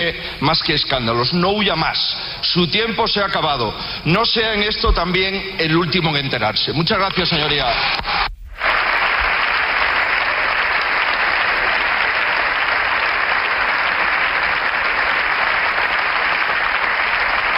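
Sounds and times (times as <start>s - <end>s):
speech: 0.0s - 8.2s
long applause from parliamentary benches of the Partido Popular: 8.6s - 17.5s.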